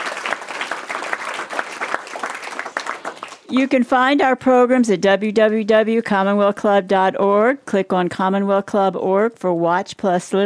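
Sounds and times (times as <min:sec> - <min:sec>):
audience applause: 0:00.0 - 0:03.5
speech: 0:03.5 - 0:10.4.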